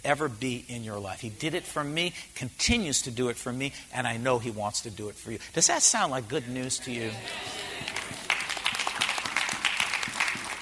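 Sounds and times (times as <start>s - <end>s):
speech: 0.0s - 8.0s
hand claps: 7.2s - 10.6s.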